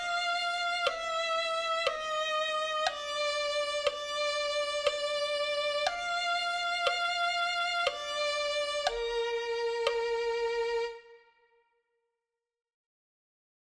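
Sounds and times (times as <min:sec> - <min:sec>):
violin: 0:00.0 - 0:11.6.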